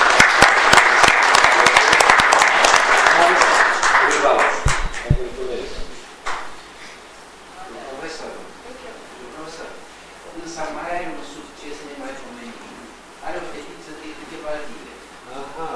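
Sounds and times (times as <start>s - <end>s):
audience applause congratulating a poster prize winner at a scientific meeting: 0.0s - 5.2s.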